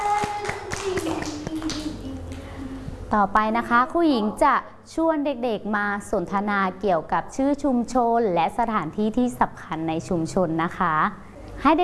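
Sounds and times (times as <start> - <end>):
children clapping hands: 0.0 - 2.5
speech: 3.1 - 11.8.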